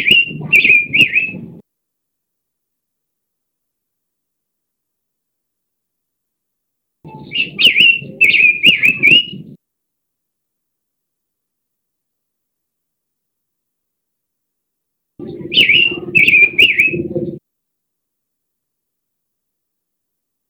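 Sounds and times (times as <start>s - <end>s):
pancawarna bird calling: 0.0s - 1.6s, 7.1s - 9.6s, 15.2s - 17.4s.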